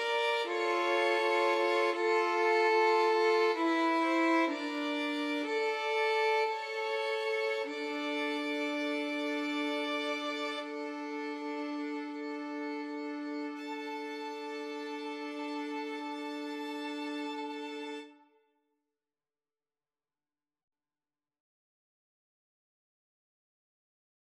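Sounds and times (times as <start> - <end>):
violin trio playing a pavane: 0.0 - 18.2.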